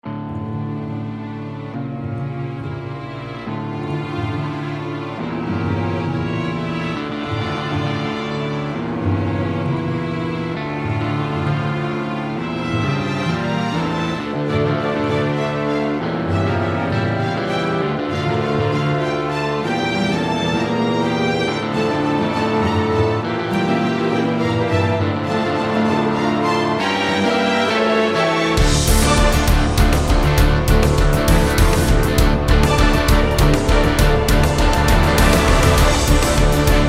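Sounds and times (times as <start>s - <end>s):
cinematic action music: 3.5s - 36.8s.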